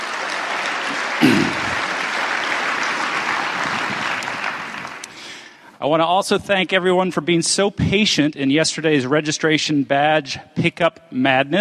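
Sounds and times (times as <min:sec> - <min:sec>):
audience round of applause: 0:00.0 - 0:05.6
speech: 0:05.8 - 0:11.5.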